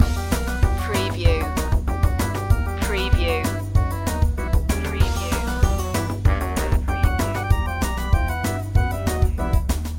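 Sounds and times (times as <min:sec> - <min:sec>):
spooky pumpkin head music loop: 0:00.0 - 0:09.9.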